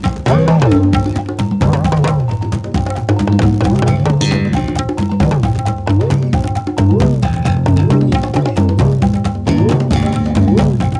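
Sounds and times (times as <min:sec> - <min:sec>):
rhythm loops: 0:00.0 - 0:10.9.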